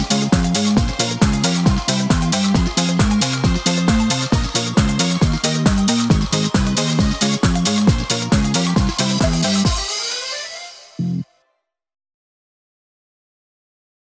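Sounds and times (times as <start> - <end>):
karaoke singing: 0.0 - 11.0.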